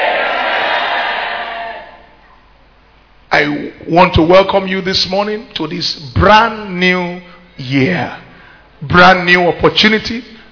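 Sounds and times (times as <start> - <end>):
church congregation shouting amen: 0.0 - 2.1
speech: 3.4 - 8.2, 8.8 - 10.3.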